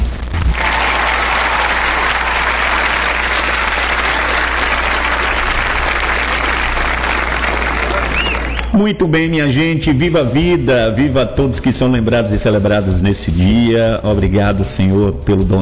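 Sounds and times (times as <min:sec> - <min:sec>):
applause: 0:00.5 - 0:08.8
speech: 0:08.8 - 0:15.5.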